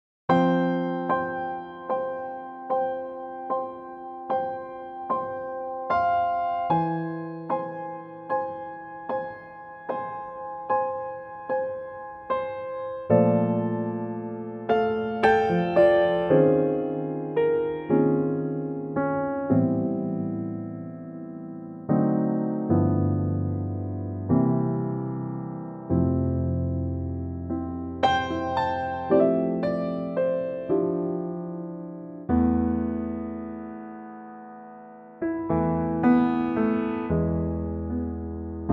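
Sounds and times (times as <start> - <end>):
piano track in F: 0.3 - 38.7.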